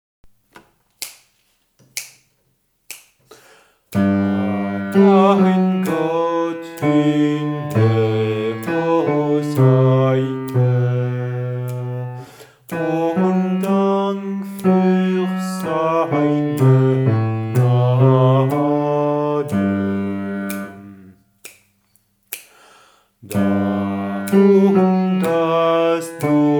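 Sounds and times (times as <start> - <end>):
bass voice singing a hymn: 4.0 - 21.2, 23.2 - 26.5.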